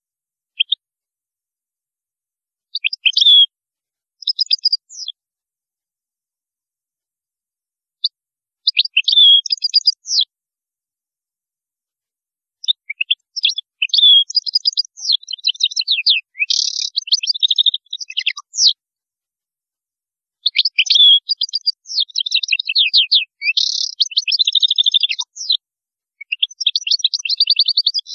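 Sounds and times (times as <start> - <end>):
European goldfinch song: 0.5 - 0.8, 2.7 - 3.5, 4.1 - 5.2, 8.0 - 10.3, 12.6 - 18.8, 20.4 - 25.6, 26.2 - 28.1.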